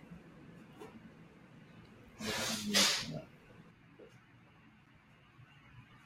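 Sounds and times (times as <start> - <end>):
nose blowing: 2.2 - 3.2.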